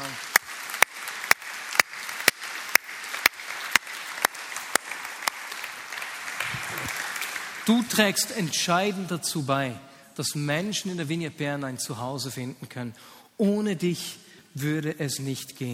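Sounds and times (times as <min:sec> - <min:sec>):
audience applause: 0:00.0 - 0:07.8
speech: 0:07.7 - 0:15.7.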